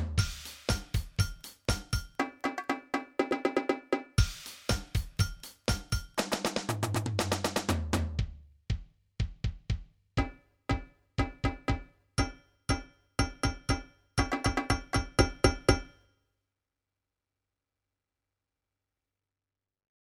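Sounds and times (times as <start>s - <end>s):
drum: 0.0s - 16.0s.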